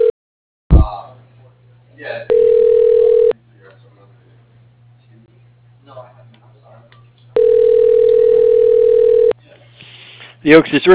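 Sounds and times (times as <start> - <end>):
speech: 2.0 - 2.6, 10.5 - 10.9
telephone dial tone after disconnected call: 2.3 - 3.3, 7.4 - 9.3.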